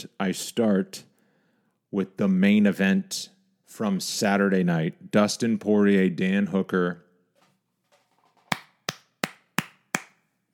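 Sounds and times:
speech: 0.1s - 1.1s, 1.9s - 7.0s
hand claps: 8.5s - 10.2s.

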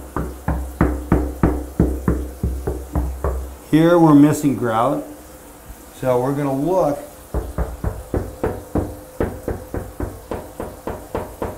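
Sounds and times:
tapping on loose bathroom tile: 0.0s - 3.6s, 7.3s - 11.5s
speech: 0.2s - 0.4s, 3.7s - 5.1s, 6.0s - 7.1s.

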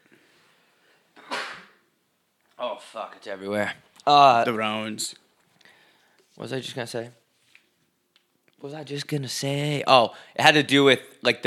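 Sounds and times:
person sneezing: 1.2s - 1.8s
speech: 2.6s - 5.2s, 6.4s - 7.2s, 8.6s - 11.4s.

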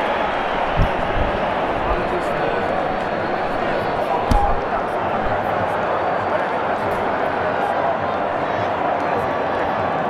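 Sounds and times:
football stadium crowd roar at Wembley: 0.0s - 10.0s
sharp thump: 4.0s - 5.4s
sharper knock: 4.2s - 4.7s.

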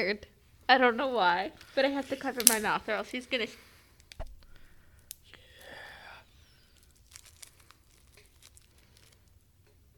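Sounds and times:
speech: 0.0s - 3.7s
wrapped package unwrapping: 6.3s - 9.4s.

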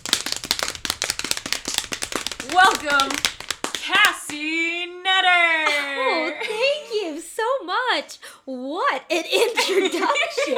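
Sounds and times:
drum roll: 0.0s - 4.4s
speech: 2.4s - 3.3s, 3.9s - 10.5s
laughter: 5.4s - 7.2s, 9.1s - 10.5s.

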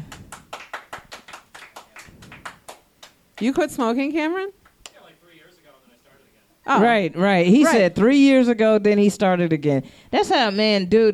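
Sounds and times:
audience clapping: 0.0s - 3.6s
speech: 3.4s - 4.6s, 6.7s - 11.1s.

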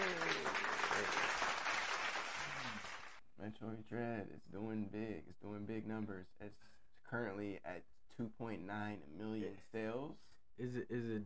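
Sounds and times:
clapping applause sound effect: 0.0s - 3.2s
speech: 3.5s - 11.2s.

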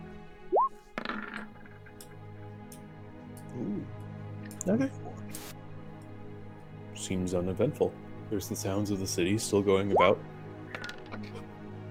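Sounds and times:
rolling a die: 0.9s - 2.0s, 10.7s - 11.2s
speech: 4.6s - 5.1s, 7.1s - 10.3s.

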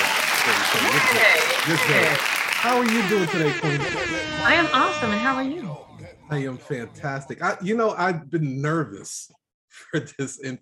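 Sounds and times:
applause welcoming a guest onto a talk show stage: 0.0s - 3.6s
laughter: 0.3s - 7.9s
speech: 0.5s - 10.6s.

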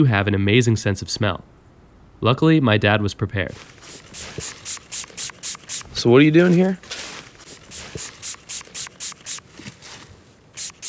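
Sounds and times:
speech: 0.0s - 1.6s, 2.2s - 4.8s, 6.0s - 6.9s
fox urine pump-sprayed onto a wick: 3.5s - 10.8s.

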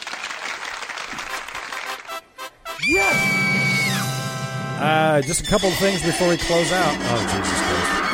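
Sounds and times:
applause sound effect: 0.0s - 2.2s
speech: 2.8s - 3.6s, 4.8s - 8.0s.

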